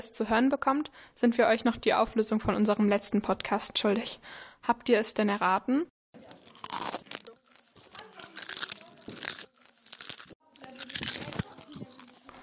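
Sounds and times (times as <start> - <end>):
speech: 0.0 - 5.9
person crunching potato chips: 6.2 - 12.4.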